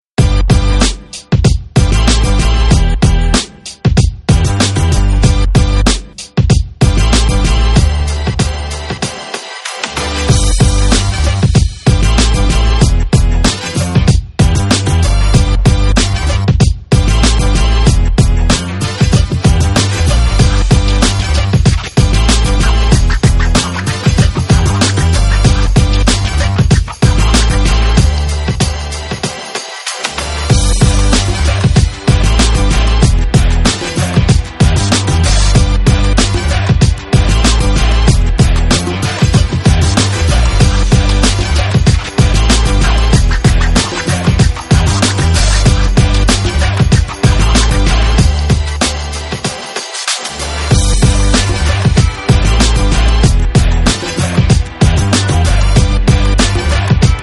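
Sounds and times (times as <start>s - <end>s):
main music: 0.1s - 57.2s.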